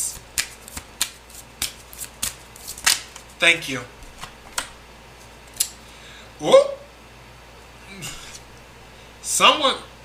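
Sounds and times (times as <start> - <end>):
tarot cards being shuffled: 0.0 - 3.4, 4.0 - 4.8
speech: 3.4 - 4.0, 6.4 - 6.8, 9.3 - 9.9.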